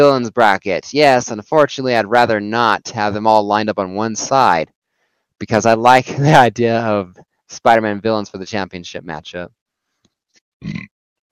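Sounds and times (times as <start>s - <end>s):
speech: 0.0s - 4.8s, 5.4s - 9.6s, 10.6s - 11.3s
person burping: 10.6s - 11.3s.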